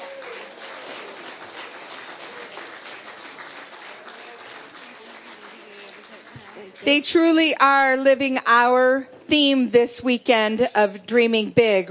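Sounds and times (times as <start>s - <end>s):
crowd applauding: 0.0s - 6.8s
speech: 6.6s - 11.8s.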